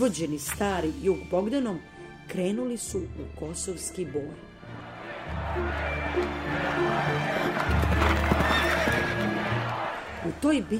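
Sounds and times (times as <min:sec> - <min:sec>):
speech: 0:00.0 - 0:04.5, 0:05.6 - 0:08.6, 0:10.2 - 0:10.7
horses whinnying: 0:05.6 - 0:09.8
horses from an old imperial stud galloping: 0:06.1 - 0:10.4.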